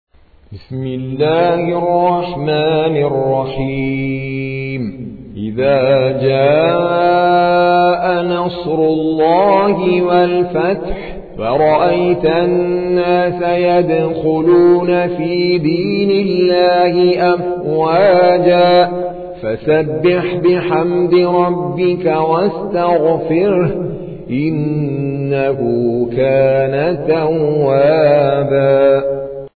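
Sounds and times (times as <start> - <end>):
Quran recitation by an Indian reciter: 0.5 - 29.5.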